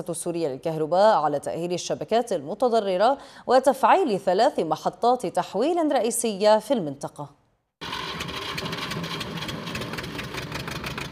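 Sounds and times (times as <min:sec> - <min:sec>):
speech: 0:00.0 - 0:07.4
diesel generator running to power a grain-sieving mill: 0:07.8 - 0:11.0.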